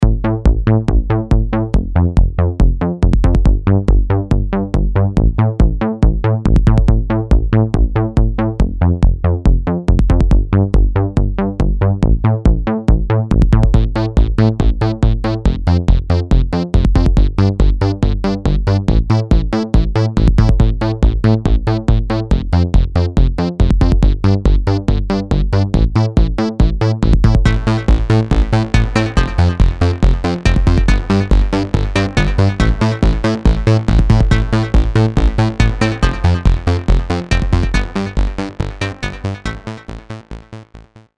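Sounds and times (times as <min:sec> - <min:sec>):
old style music mix: 0:00.0 - 0:40.9.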